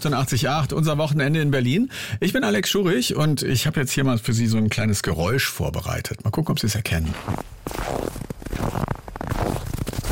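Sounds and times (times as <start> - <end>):
speech: 0.0 - 8.7
footsteps crunching in snow: 6.9 - 10.1.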